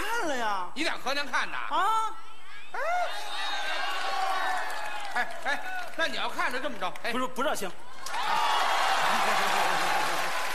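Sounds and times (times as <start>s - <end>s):
speech: 0.3s - 3.6s, 5.2s - 8.2s, 9.1s - 10.0s
audience applause: 3.5s - 6.4s, 8.0s - 10.5s.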